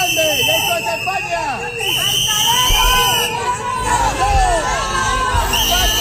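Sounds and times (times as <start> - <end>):
shrill whistles: 0.0 - 3.4, 5.4 - 5.9
crowd shouting and jeering: 0.0 - 5.9.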